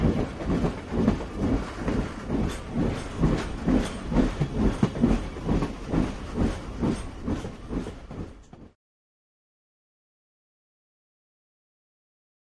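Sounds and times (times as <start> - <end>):
passenger train heard from outside: 0.0 - 8.7.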